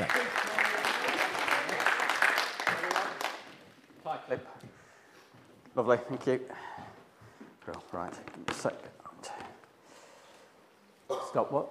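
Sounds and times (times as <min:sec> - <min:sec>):
audience round of applause: 0:00.0 - 0:03.6
speech: 0:05.8 - 0:06.8, 0:08.0 - 0:09.0, 0:11.3 - 0:11.6.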